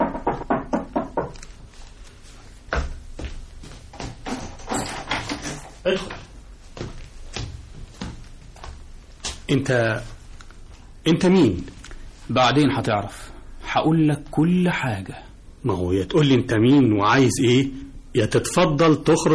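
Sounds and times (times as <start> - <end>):
knocking on a door: 0.0 - 1.4
speech: 5.8 - 6.2, 9.5 - 10.2, 11.1 - 19.3.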